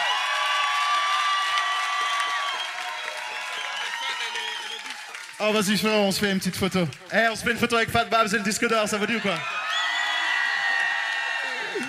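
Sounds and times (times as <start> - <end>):
crowd cheering, shouting and whooping: 0.0 - 5.4, 8.9 - 11.8
crowd clapping: 0.0 - 11.8
speech: 5.4 - 9.6.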